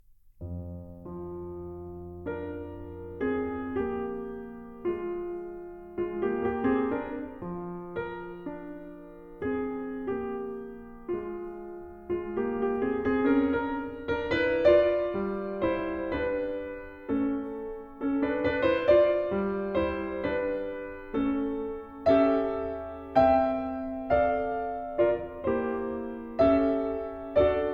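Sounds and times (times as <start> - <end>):
dumka for piano: 0.0 - 27.7.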